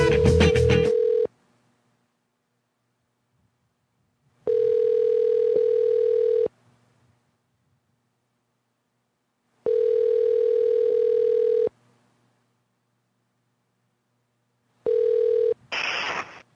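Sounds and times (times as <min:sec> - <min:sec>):
outgoing phone-call ringback: 0:00.0 - 0:01.3, 0:04.4 - 0:06.5, 0:09.6 - 0:11.7, 0:14.8 - 0:15.6.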